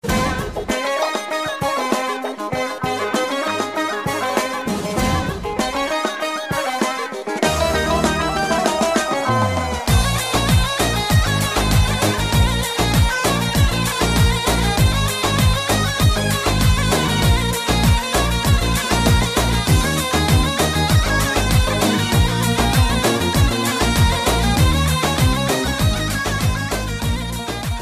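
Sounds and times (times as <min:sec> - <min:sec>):
Turkish halay folk dance music: 0:00.0 - 0:27.8.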